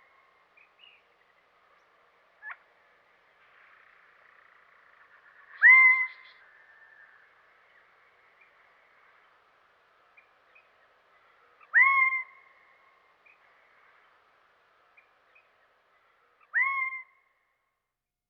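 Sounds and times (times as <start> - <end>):
Gambel's Quail calling in Western North America: 5.5 - 6.4, 11.6 - 12.5, 16.4 - 17.1.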